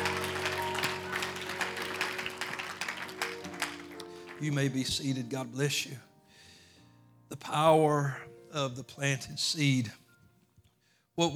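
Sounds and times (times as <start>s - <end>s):
audience clapping hands in praise: 0.0s - 5.2s
sustained organ-like tones humming: 0.0s - 5.4s
speech: 4.4s - 6.1s, 7.4s - 10.0s, 11.2s - 11.3s.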